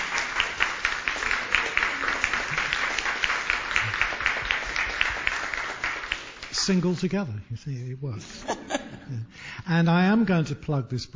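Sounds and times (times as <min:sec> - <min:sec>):
audience applause: 0:00.0 - 0:06.6
speech: 0:06.7 - 0:08.5, 0:09.1 - 0:11.1
laughter: 0:08.2 - 0:09.3.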